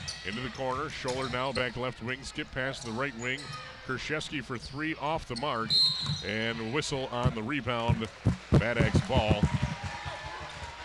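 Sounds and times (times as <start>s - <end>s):
speech: 0.2s - 9.6s
basketball rolling into a courtside microphone: 7.2s - 10.1s.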